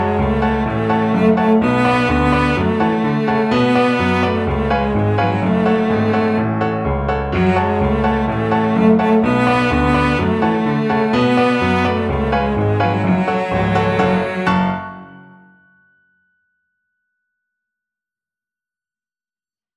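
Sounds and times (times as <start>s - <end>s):
cello melody: 0.0s - 15.4s.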